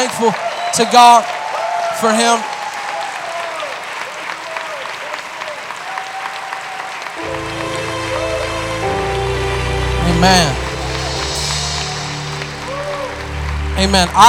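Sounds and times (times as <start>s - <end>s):
speech: 0.0s - 1.4s, 2.0s - 2.5s, 10.2s - 10.6s, 13.8s - 14.2s
audience clapping hands: 0.0s - 14.2s
sustained organ-like chords: 7.2s - 14.2s.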